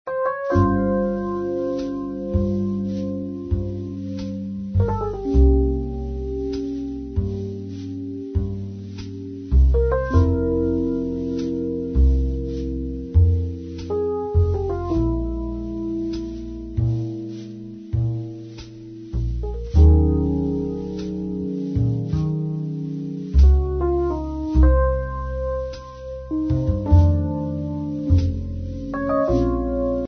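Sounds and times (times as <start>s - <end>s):
sad jazz: 0.1s - 30.0s.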